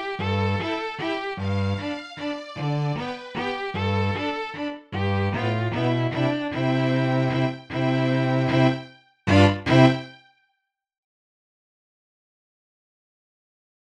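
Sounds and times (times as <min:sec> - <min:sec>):
bass part of a quartet playing a folk tune: 0:00.1 - 0:00.7, 0:01.3 - 0:10.2.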